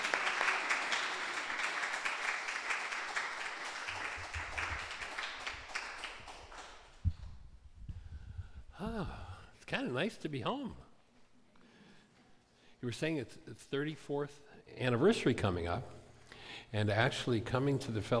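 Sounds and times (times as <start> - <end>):
audience applause: 0.0 - 7.0
speech: 9.0 - 10.9, 12.8 - 16.0, 16.7 - 18.1.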